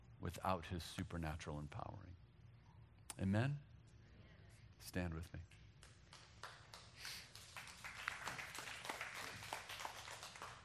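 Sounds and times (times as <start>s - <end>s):
speech: 0.2s - 2.2s, 3.2s - 3.7s, 4.8s - 5.6s
scattered clapping from a few audience members: 5.5s - 10.6s.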